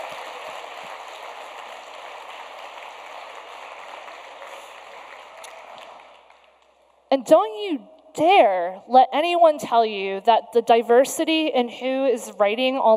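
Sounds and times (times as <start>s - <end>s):
crowd applauding: 0.0s - 6.9s
speech: 7.1s - 12.9s.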